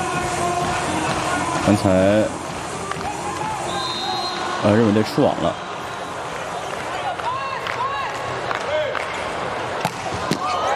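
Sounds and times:
crowd din at a volleyball match between national teams: 0.0 - 10.7
speech: 1.7 - 2.4, 4.6 - 5.6.

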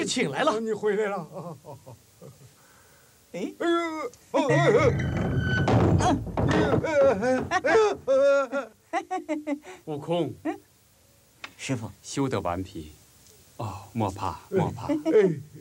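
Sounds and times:
speech: 0.1 - 2.4, 3.3 - 10.7, 11.6 - 13.0, 13.6 - 15.6
man shouting urgently: 3.6 - 5.0
heavy knocking on a door: 4.8 - 8.1.

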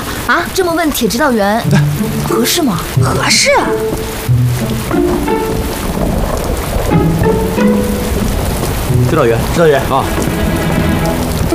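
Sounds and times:
rain falling: 0.0 - 11.5
speech: 0.3 - 7.9, 9.1 - 10.7
thunder: 3.7 - 11.5.

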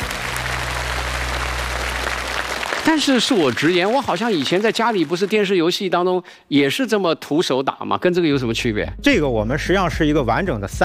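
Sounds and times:
audience applause: 0.0 - 5.8
speech: 2.9 - 10.8.

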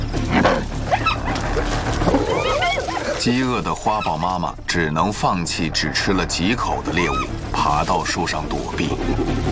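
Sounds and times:
pack of hunting dogs chirping, yipping and whimpering: 0.2 - 4.4, 6.9 - 7.4
speech: 3.3 - 9.5.

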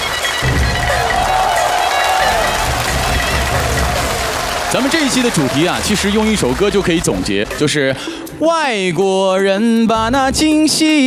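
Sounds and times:
audience clapping at a Peking opera themed show: 0.0 - 8.1
speech: 4.7 - 11.0.

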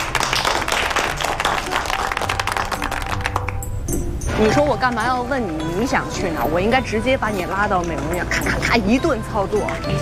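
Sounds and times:
hand clapping: 0.0 - 3.8
speech: 4.4 - 10.0.

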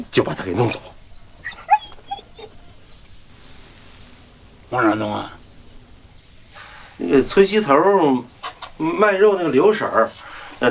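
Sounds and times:
speech: 0.0 - 1.6, 4.7 - 5.4, 7.0 - 10.6
puppy whimpering and yipping: 1.4 - 2.7.

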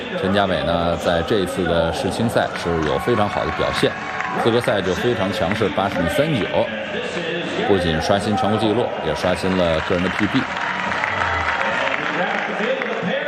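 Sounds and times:
speech: 0.1 - 10.6
crowd cheering and applauding: 1.6 - 6.1, 8.6 - 13.1.

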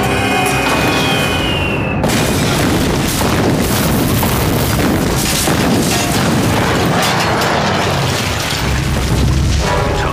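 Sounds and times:
high descending bomb whistle: 0.2 - 2.1
crackling debris from bomb blasts: 0.7 - 10.1
bombs exploding from an air raid: 2.0 - 10.1.

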